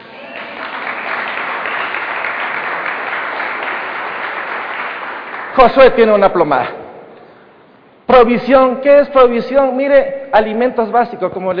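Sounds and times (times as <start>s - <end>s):
audience applauding: 0.0s - 5.9s
speech: 5.6s - 6.8s, 8.2s - 11.5s.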